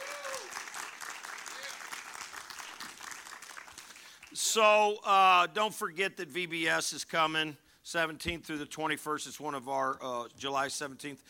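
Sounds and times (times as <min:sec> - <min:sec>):
audience applause: 0:00.0 - 0:04.4
speech: 0:04.4 - 0:11.2.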